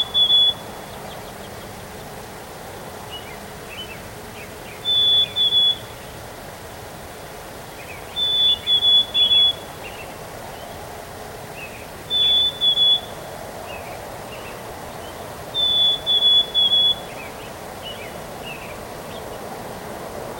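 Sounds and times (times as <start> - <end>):
bird song: 0.0 - 2.3, 3.0 - 6.2, 7.5 - 19.8.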